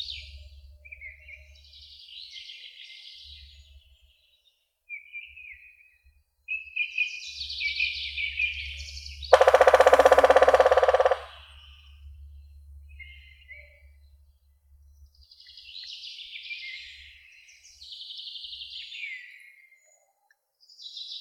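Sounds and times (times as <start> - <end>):
woodpecker drumming: 9.4 - 11.5.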